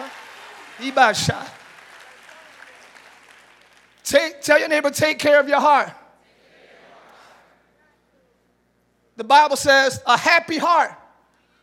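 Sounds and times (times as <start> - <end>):
audience hand claps: 0.0 - 4.0
speech: 0.8 - 1.6, 4.1 - 6.0, 9.2 - 11.0.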